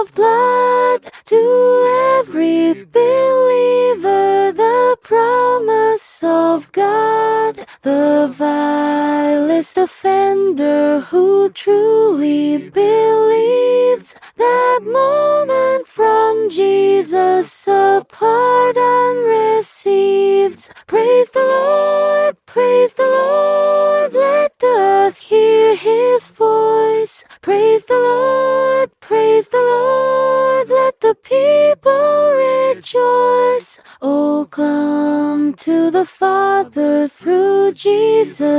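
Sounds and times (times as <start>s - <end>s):
soprano vocal guide singing a hymn: 0.0s - 38.5s.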